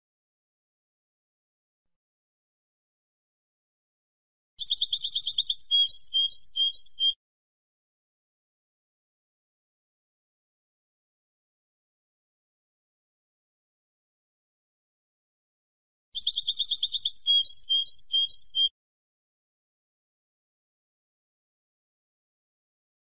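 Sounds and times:
European goldfinch song: 0:04.6 - 0:07.2, 0:16.2 - 0:18.7.

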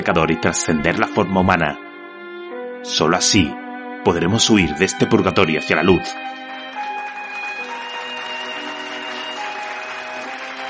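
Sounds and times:
speech: 0:00.0 - 0:01.9, 0:02.8 - 0:06.4
crowd ovation applause: 0:06.8 - 0:10.6.

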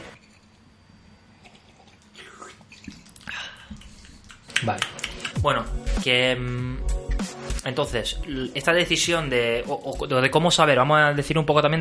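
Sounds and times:
person sipping tea: 0:01.3 - 0:04.6
speech: 0:04.6 - 0:11.7.

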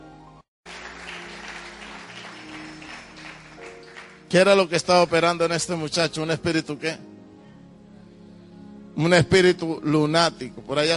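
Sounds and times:
audience applause: 0:00.6 - 0:04.3
speech: 0:04.3 - 0:07.1, 0:09.0 - 0:10.9.

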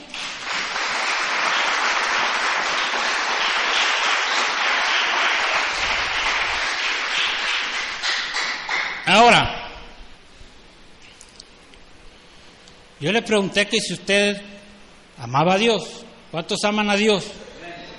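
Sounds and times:
audience applauding: 0:00.0 - 0:09.1
speech: 0:13.0 - 0:14.6, 0:15.2 - 0:17.4.

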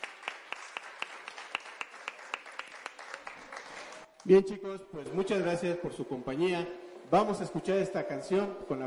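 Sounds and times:
audience applause: 0:00.0 - 0:04.3
speech: 0:04.2 - 0:08.8.

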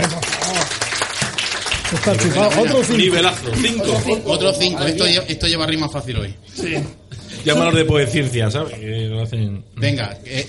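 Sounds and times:
people calling and cheering: 0:00.0 - 0:03.4
crowd applauding: 0:00.0 - 0:04.0
speech: 0:01.9 - 0:10.4.

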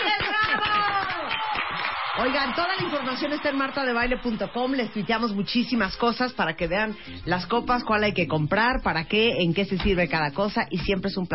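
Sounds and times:
applause: 0:00.0 - 0:06.0
speech: 0:02.2 - 0:11.3.

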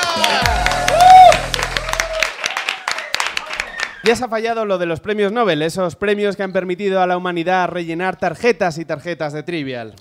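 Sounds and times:
audience applauding: 0:00.0 - 0:04.2
speech: 0:04.0 - 0:09.9.

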